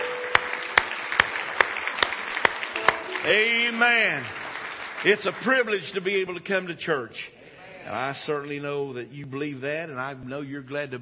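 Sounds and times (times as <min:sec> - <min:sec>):
audience clapping hands in praise: 0:00.0 - 0:06.2
speech: 0:03.2 - 0:04.4, 0:05.0 - 0:11.0.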